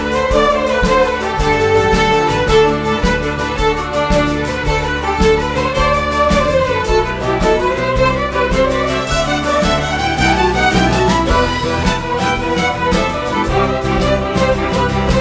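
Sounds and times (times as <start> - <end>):
jig tune: 0.0 - 15.2.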